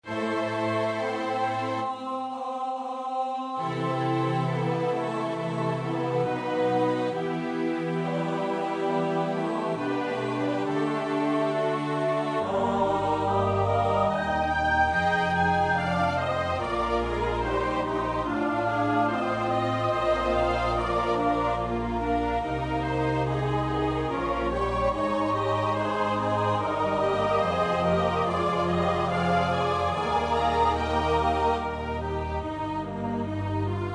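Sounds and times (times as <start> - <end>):
choir singing in four parts: 0.1 - 33.9.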